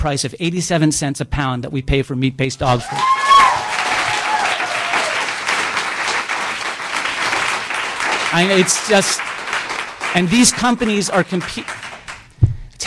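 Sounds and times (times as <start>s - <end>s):
speech: 0.0s - 3.3s, 8.3s - 9.3s, 10.1s - 11.8s
audience applause: 2.8s - 12.4s.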